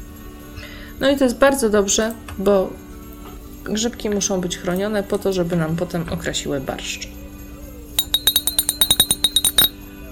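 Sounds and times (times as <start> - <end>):
speech: 1.0 - 2.8, 3.6 - 7.2
small bells jingling: 8.0 - 9.8.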